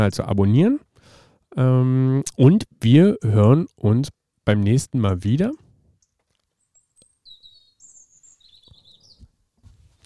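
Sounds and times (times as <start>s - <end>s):
speech: 0.0s - 0.9s, 1.5s - 5.6s
bird chirping: 6.0s - 9.4s.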